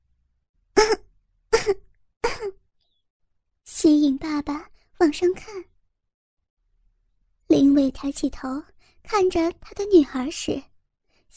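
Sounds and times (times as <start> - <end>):
light coughs: 0.8 - 2.6
speech: 4.1 - 5.7, 7.8 - 10.7.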